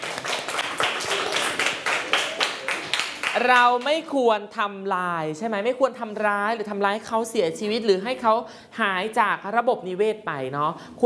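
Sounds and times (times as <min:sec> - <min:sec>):
children clapping hands: 0:00.0 - 0:03.6
speech: 0:03.4 - 0:11.0.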